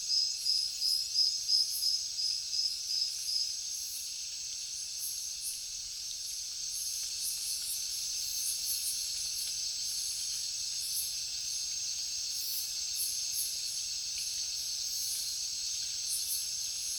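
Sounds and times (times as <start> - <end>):
crickets chirping in a jungle at night: 0.1 - 16.9.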